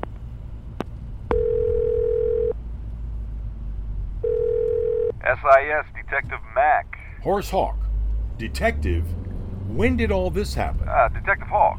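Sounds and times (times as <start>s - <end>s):
low rumbling engine-like hum: 0.0s - 11.7s
outgoing phone call electronic ringback tones: 1.3s - 2.6s, 4.2s - 5.2s
speech: 5.4s - 7.8s, 8.4s - 11.7s.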